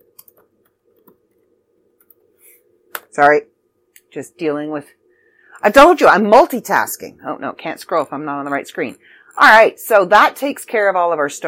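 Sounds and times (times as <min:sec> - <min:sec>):
keyboard typing: 0:00.0 - 0:01.4
low steady hum: 0:00.0 - 0:11.4
speech: 0:03.2 - 0:03.5, 0:04.1 - 0:05.0, 0:05.6 - 0:11.4.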